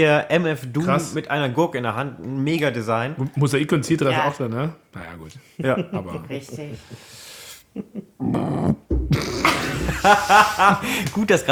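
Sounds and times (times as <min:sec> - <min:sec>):
speech: 0:00.0 - 0:09.4, 0:10.0 - 0:11.5
laughter: 0:05.6 - 0:08.2, 0:09.1 - 0:11.5
loud low burp: 0:08.2 - 0:10.1.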